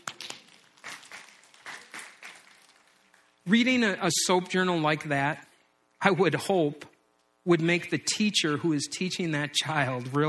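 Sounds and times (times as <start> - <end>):
small audience clapping: 0.0 - 3.4
speech: 3.5 - 10.2.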